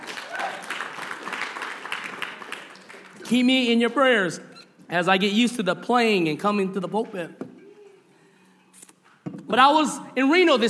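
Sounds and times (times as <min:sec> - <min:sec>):
audience clapping in praise: 0:00.0 - 0:04.2
speech: 0:03.3 - 0:07.4, 0:09.5 - 0:10.6.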